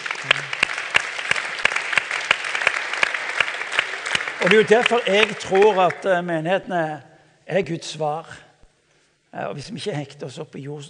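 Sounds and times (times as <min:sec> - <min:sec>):
audience applause: 0:00.0 - 0:06.1
speech: 0:00.2 - 0:00.6, 0:04.4 - 0:08.4, 0:09.3 - 0:10.8.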